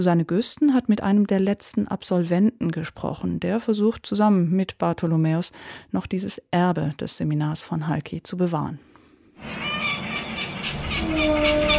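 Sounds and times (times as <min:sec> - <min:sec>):
speech: 0:00.0 - 0:10.0
seagulls calling over a ferry: 0:09.4 - 0:11.7
ferry engine rumble: 0:09.5 - 0:11.7.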